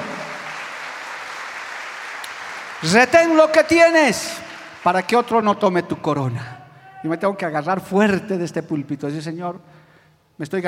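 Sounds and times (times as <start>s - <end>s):
audience applauding: 0.0s - 5.6s
speech: 2.8s - 9.8s, 10.4s - 10.6s.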